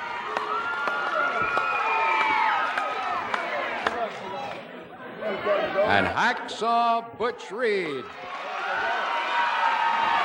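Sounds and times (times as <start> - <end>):
large arena crowd applauding and cheering: 0.0 - 4.1, 8.2 - 10.2
speech: 5.9 - 8.9.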